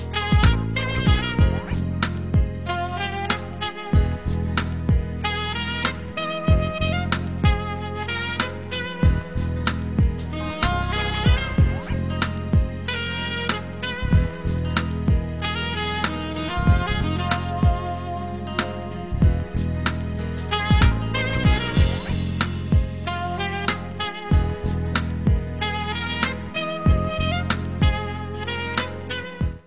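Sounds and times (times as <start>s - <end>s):
jazz music: 0.0s - 29.6s.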